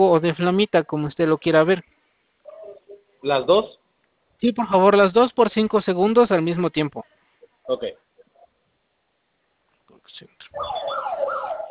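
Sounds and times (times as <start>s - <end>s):
speech: 0.0s - 1.9s, 3.2s - 3.8s, 4.4s - 7.1s, 7.7s - 8.0s, 10.2s - 10.9s
alarm system siren going off: 10.6s - 11.6s.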